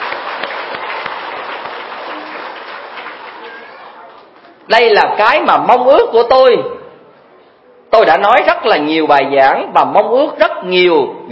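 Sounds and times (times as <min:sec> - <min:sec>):
audience at a Buddhist gathering applauding children on International Children's Day: 0:00.0 - 0:04.6
speech: 0:04.7 - 0:06.8, 0:08.0 - 0:11.3.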